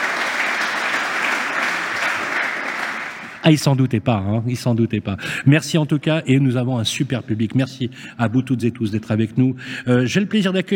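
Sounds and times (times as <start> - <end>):
audience applause: 0.0 - 3.4
speech: 3.4 - 10.7.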